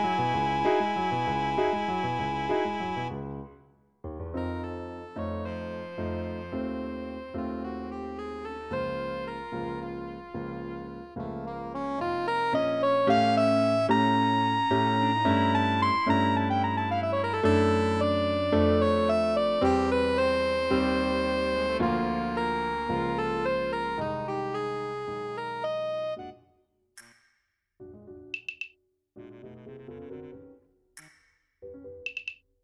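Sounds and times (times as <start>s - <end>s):
tango music: 0.0s - 3.4s, 4.2s - 26.2s.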